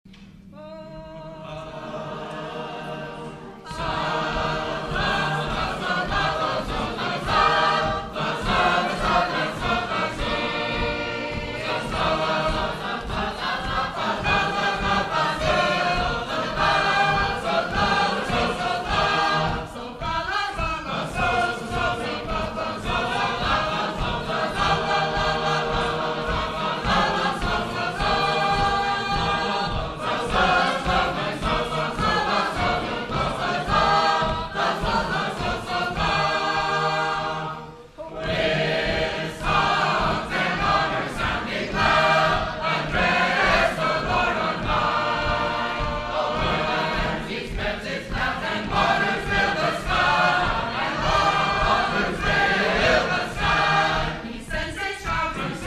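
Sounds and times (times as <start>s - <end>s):
Sacred Harp shape-note choir singing: 0.1s - 55.6s.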